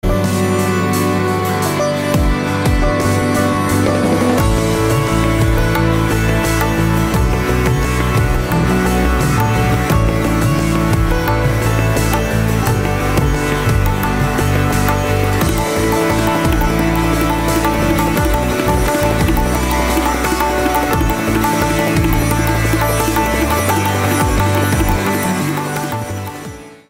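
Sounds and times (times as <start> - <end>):
instrumental music: 0.0 - 26.8.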